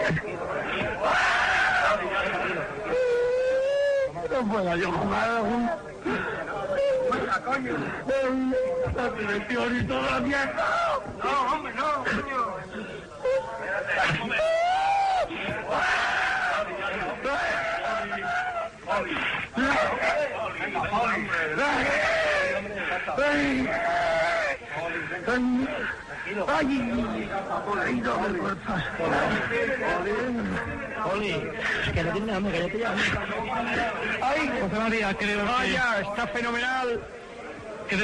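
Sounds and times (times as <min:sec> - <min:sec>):
murmur of other voices: 0:00.0 - 0:38.0
speech: 0:00.1 - 0:00.5, 0:04.5 - 0:06.4, 0:07.2 - 0:14.5, 0:25.3 - 0:37.2, 0:37.9 - 0:38.0
injured player crying during panic attack: 0:01.7 - 0:20.2, 0:20.9 - 0:32.2.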